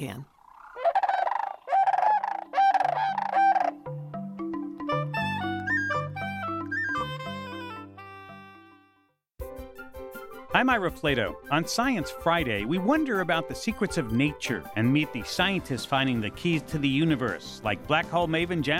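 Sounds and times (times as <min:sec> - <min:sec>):
speech: 0:00.0 - 0:00.4, 0:10.6 - 0:18.7
sandhill crane honking calls: 0:00.4 - 0:03.9
instrumental music with low held notes: 0:01.7 - 0:18.7.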